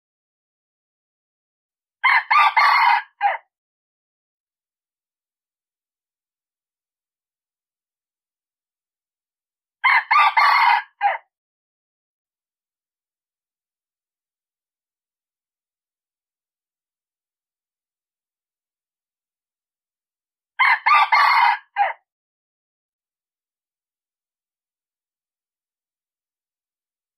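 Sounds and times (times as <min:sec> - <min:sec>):
red junglefowl crowing: 0:02.0 - 0:03.5, 0:09.8 - 0:11.3, 0:20.6 - 0:22.0.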